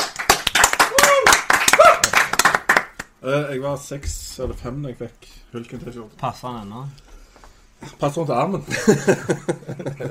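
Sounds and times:
people clapping: 0.0 - 3.1
whoops and laughter: 0.9 - 2.1
speech: 3.2 - 7.1, 7.8 - 10.0.

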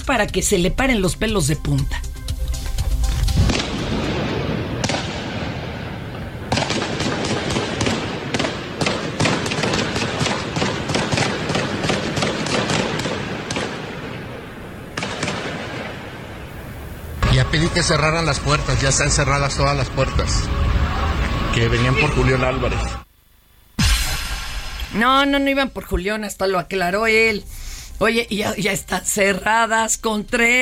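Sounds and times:
speech: 0.1 - 2.1, 17.7 - 20.7, 21.6 - 23.0, 25.0 - 30.6
heavy booms: 3.2 - 21.7, 23.8 - 25.2
gunfire during a shootout: 3.4 - 16.4.

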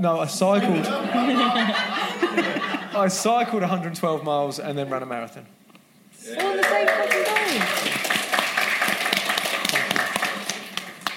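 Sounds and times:
speech: 0.0 - 5.6, 6.2 - 7.9
laughter: 0.6 - 3.7
spontaneous round of applause: 6.2 - 11.1.

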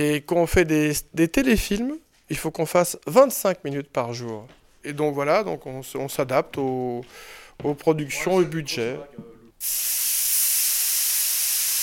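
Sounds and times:
speech: 0.0 - 10.2
hot steam iron hissing on a wet cloth cooking leg of lamb: 9.6 - 11.8.

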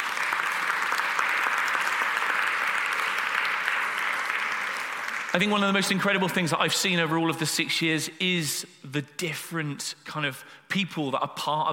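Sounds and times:
audience applause: 0.0 - 6.0
speech: 5.3 - 11.7.

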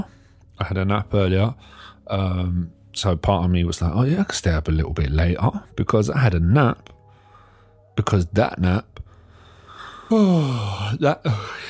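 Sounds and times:
speech: 0.0 - 7.0, 8.0 - 9.0, 10.1 - 11.6
person yawning: 10.0 - 11.6.

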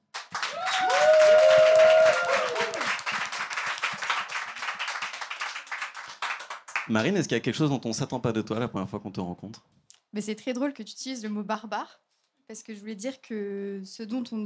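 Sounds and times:
audience applause: 0.1 - 7.2
audience cheering: 0.3 - 5.8
speech: 6.9 - 14.4.

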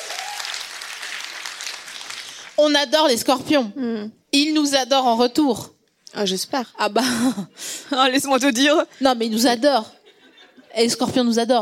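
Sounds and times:
audience applause: 0.0 - 2.6
speech: 2.6 - 10.0, 10.8 - 11.6.

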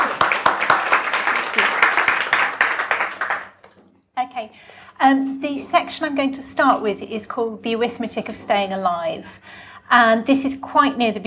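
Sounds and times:
round of applause from many people: 0.0 - 3.7
speech: 5.0 - 11.2.

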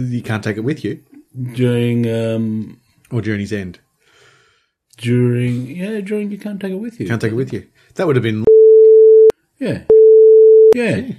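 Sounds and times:
speech: 0.0 - 3.8, 5.0 - 8.5, 9.6 - 9.9, 10.8 - 11.1
censor bleep tone: 8.5 - 9.3, 9.9 - 10.8.

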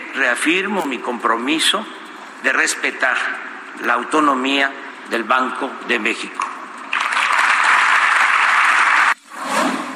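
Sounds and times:
speech: 0.2 - 6.5
audience applauding: 6.9 - 9.2.

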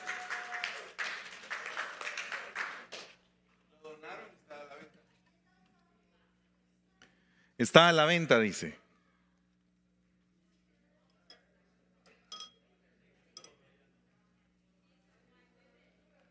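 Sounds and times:
applause: 0.0 - 3.2
speech: 7.6 - 8.8.

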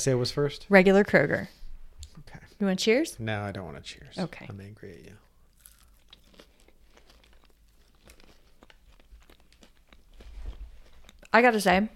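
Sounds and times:
speech: 0.0 - 1.6, 2.2 - 5.2, 11.3 - 11.9
crunching of tater tots being chewed: 5.5 - 11.3.

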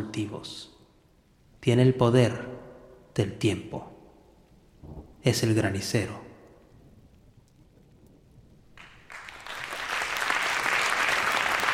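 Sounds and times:
speech: 0.0 - 0.7, 1.6 - 2.6, 3.2 - 3.9, 4.8 - 6.3
applause: 8.8 - 11.7.

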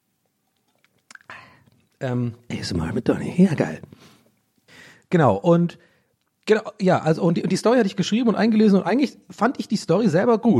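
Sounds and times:
person sipping a drink: 0.4 - 2.0
mouth clicks and taps: 0.5 - 2.0
speech: 2.0 - 4.2, 5.1 - 5.9, 6.5 - 10.5.

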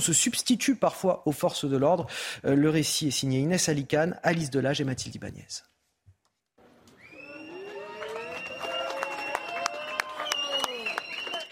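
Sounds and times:
speech: 0.0 - 5.7
supporters applauding outside courthouse: 7.0 - 11.4.

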